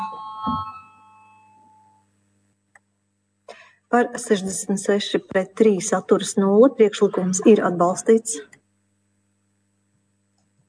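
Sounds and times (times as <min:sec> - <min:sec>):
bell rung before a parliamentary vote: 0:00.0 - 0:02.1
speech: 0:04.0 - 0:08.6.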